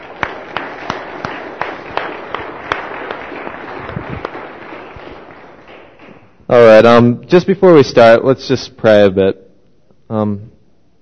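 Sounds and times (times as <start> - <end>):
audience applause for worship band: 0.0 - 6.4
speech: 6.5 - 9.4, 10.1 - 10.6.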